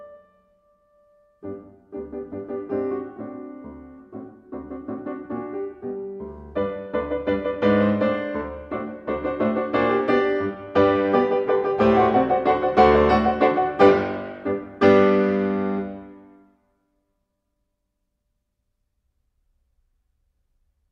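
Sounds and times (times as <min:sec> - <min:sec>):
piano piece in G major: 0:00.0 - 0:16.6.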